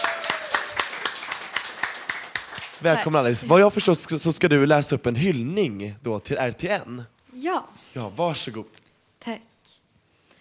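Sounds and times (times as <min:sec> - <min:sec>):
studio applause: 0:00.0 - 0:03.6
speech: 0:02.8 - 0:09.5.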